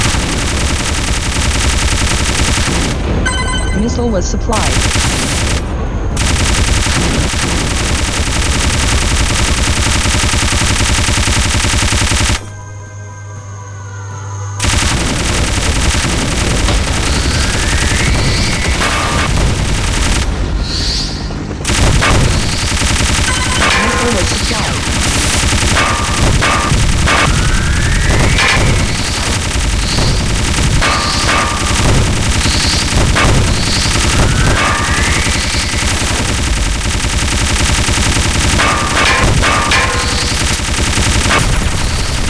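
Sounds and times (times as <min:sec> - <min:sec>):
machine-gun fire from an arcade shooting video game: 0:00.0 - 0:12.6, 0:14.6 - 0:20.6, 0:21.6 - 0:42.2
speech: 0:03.8 - 0:05.1
rising electronic sweep tones: 0:22.6 - 0:38.4.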